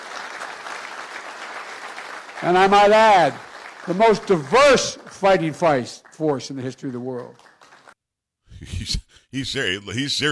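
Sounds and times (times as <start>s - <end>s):
applause from audience: 0.0s - 8.0s
speech: 2.4s - 7.5s, 8.6s - 10.3s.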